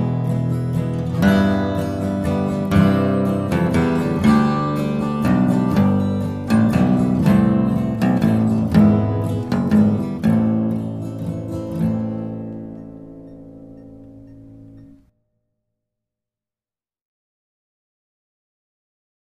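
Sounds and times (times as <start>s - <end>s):
bass solo: 0.0s - 15.1s.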